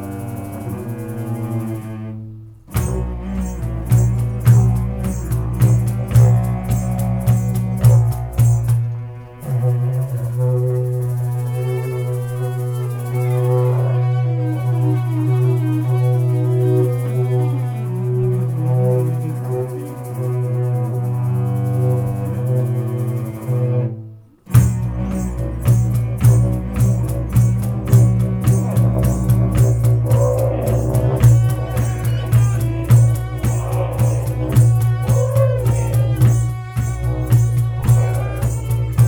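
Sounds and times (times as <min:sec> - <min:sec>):
camel train: 0:02.8 - 0:23.7, 0:24.5 - 0:39.0.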